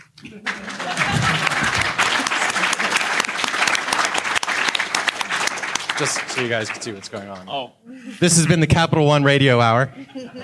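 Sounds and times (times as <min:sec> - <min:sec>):
speech: 0:00.3 - 0:01.0, 0:06.0 - 0:10.4
laughter: 0:00.4 - 0:04.0, 0:09.8 - 0:10.4
audience applause: 0:00.4 - 0:07.5.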